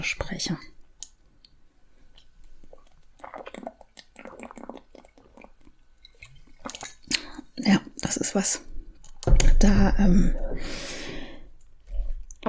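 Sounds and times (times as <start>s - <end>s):
speech: 0.0s - 0.8s, 7.6s - 8.7s, 9.6s - 10.9s
person sipping and swallowing a drink: 2.1s - 7.6s, 8.6s - 12.4s
wet mouth clicks: 2.2s - 5.5s, 6.1s - 7.4s.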